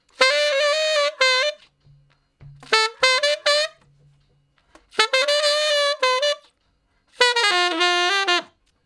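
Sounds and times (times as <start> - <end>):
tenor saxophone playing straight R&B in F: 0.0 - 4.1, 4.7 - 8.7.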